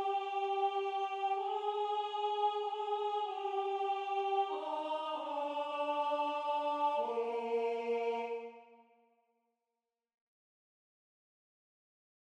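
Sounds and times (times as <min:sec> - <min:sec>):
alto voice singing: 0:00.0 - 0:08.7.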